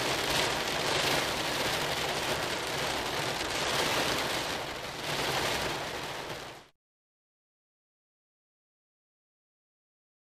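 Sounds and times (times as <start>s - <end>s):
rain on window: 0.0s - 6.7s.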